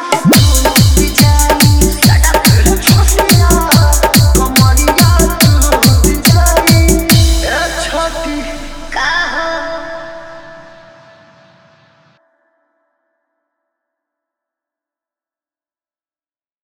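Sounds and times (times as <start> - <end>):
hard bass mix: 0.3 - 10.3.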